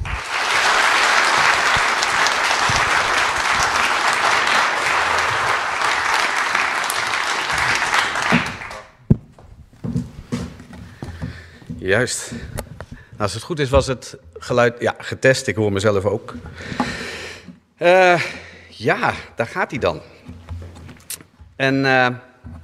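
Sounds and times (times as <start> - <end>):
audience applause: 0.0 - 9.0
speech: 11.9 - 12.5, 13.2 - 17.1, 17.8 - 20.2, 21.6 - 22.3.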